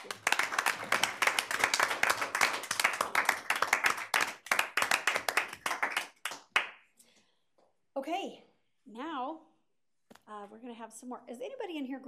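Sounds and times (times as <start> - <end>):
round of applause in council chamber: 0.0 - 6.8
speech: 10.3 - 12.0.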